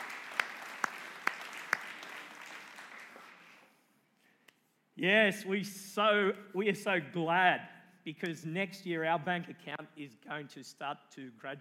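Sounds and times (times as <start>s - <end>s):
audience applause: 0.0s - 3.6s
speech: 5.0s - 11.5s.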